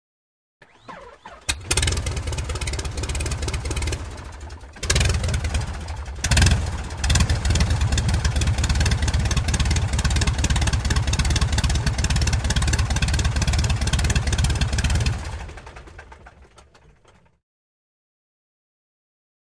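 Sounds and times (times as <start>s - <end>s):
D.H. 82 Tiger Moth prop plane engine starting, idling, revving and shutting off: 0.6s - 17.4s.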